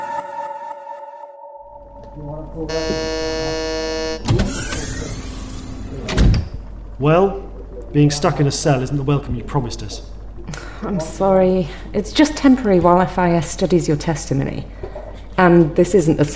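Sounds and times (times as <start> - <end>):
door closing: 2.7 - 6.6
speech: 7.0 - 7.4, 7.9 - 10.1, 10.8 - 16.3.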